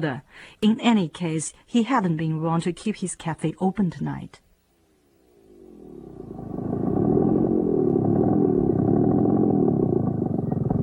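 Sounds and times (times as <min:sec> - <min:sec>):
speech: 0:00.0 - 0:04.4
motorbike engine rumbling outside: 0:05.5 - 0:10.8.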